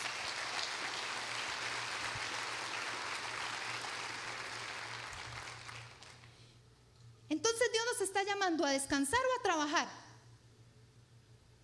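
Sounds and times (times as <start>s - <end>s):
audience applause: 0.0s - 6.3s
speech: 7.3s - 10.0s.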